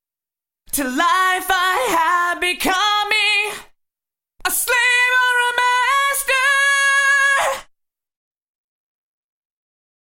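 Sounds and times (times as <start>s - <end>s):
vocals through a Yamaha Rev7 reverb unit on Symphonic setting: 0.7s - 3.8s, 4.4s - 7.7s.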